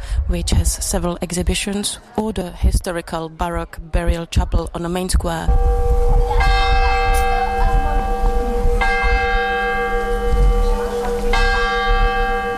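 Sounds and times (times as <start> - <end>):
speech: 0.3 - 6.6
low rumble: 5.2 - 11.6
church tower clock bell tolling: 5.5 - 12.5.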